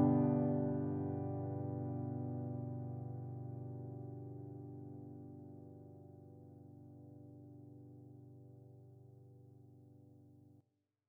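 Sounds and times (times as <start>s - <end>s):
piano accompaniment for playalong: 0.0s - 7.7s.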